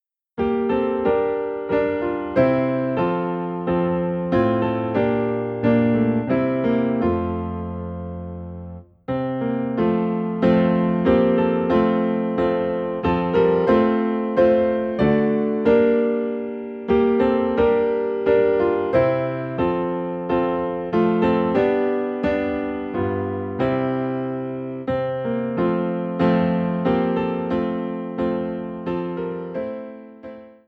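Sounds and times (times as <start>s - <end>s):
piano playing in F: 0.0s - 30.6s.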